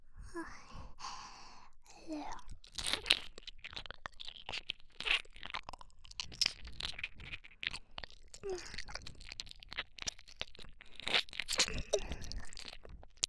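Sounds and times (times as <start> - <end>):
person whispering: 0.2 - 1.2, 1.9 - 2.6
ear licking: 2.5 - 13.2.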